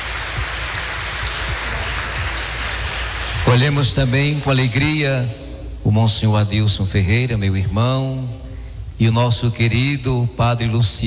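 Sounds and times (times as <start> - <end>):
round of applause: 0.0 - 4.6
speech: 3.5 - 8.4, 9.0 - 11.0.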